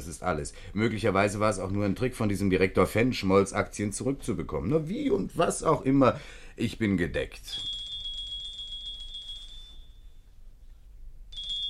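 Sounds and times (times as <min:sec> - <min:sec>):
speech: 0:00.1 - 0:07.8
doorbell ringing with a shrill electric buzz: 0:07.6 - 0:10.2, 0:11.3 - 0:11.6.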